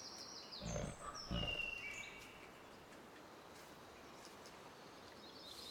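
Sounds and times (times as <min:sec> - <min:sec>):
woods ambience: 0:00.6 - 0:05.2.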